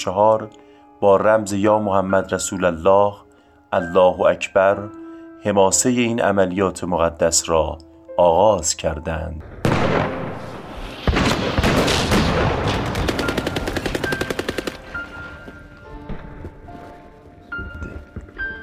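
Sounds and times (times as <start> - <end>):
speech: 0.0 - 10.0
crackling explosions: 9.4 - 15.3
loud roaring blast: 9.6 - 13.1
rapid automatic gunfire: 11.1 - 14.9.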